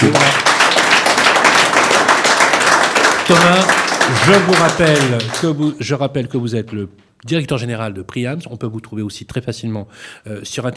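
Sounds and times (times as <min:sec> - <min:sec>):
audience applause: 0:00.0 - 0:05.7
speech: 0:03.3 - 0:10.7.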